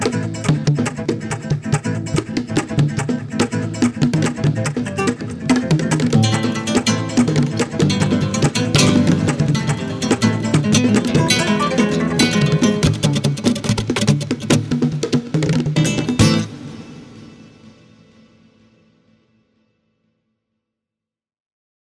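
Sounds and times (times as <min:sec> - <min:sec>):
bongo drums: 0:00.0 - 0:16.4.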